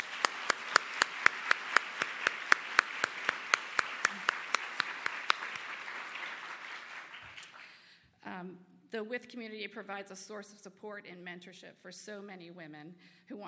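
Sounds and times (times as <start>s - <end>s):
audience applause: 0.0s - 7.8s
speech: 9.0s - 13.4s.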